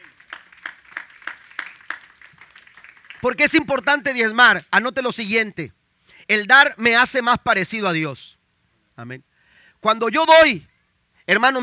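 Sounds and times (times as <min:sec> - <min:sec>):
audience applauding: 0:00.0 - 0:03.6
speech: 0:03.2 - 0:08.4, 0:09.0 - 0:10.7, 0:11.3 - 0:11.6.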